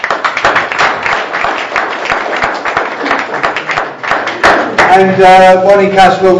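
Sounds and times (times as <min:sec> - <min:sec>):
round of applause: 0:00.0 - 0:05.1
speech: 0:05.0 - 0:06.3.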